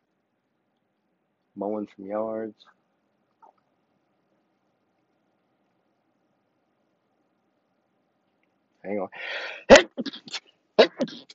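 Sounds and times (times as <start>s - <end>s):
speech: 1.6s - 2.8s, 8.9s - 11.3s
loud sharp sneezes: 9.3s - 11.3s.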